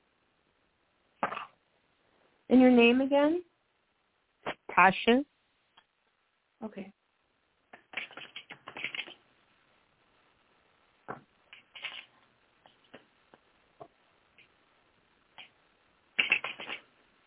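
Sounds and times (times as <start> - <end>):
speech: 2.5 - 3.5, 4.8 - 5.3, 6.6 - 7.0
cards shuffled before a card reading: 7.7 - 9.2, 11.5 - 12.1, 16.2 - 16.9.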